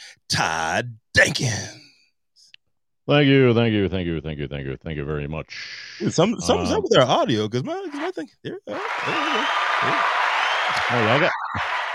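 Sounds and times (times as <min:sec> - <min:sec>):
speech: 0:00.3 - 0:01.8, 0:03.1 - 0:11.7
canned applause sound effect: 0:07.8 - 0:11.9
voices whooping: 0:08.7 - 0:11.9.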